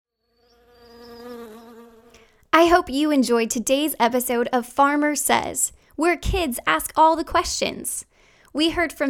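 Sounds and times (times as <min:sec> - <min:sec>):
honey bees buzzing: 0:00.4 - 0:02.2
speech: 0:02.6 - 0:09.0.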